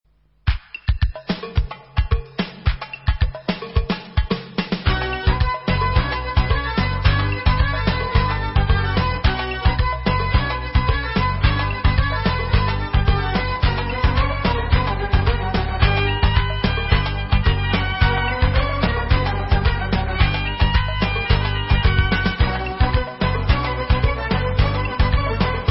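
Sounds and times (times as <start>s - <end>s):
debka instrumental music: 0.4s - 25.6s.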